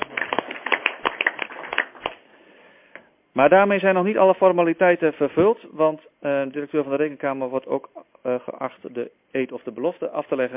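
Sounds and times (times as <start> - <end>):
audience clapping: 0.0 - 2.2
speech: 3.4 - 10.5.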